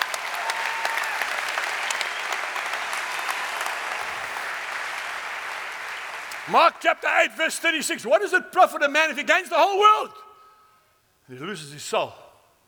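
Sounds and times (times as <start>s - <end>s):
audience clapping: 0.0s - 7.6s
speech: 6.5s - 10.2s, 11.3s - 12.2s.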